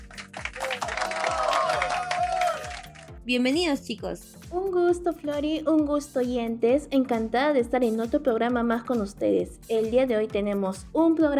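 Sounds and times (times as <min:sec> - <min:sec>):
studio applause: 0:00.0 - 0:03.2
speech: 0:03.3 - 0:11.3.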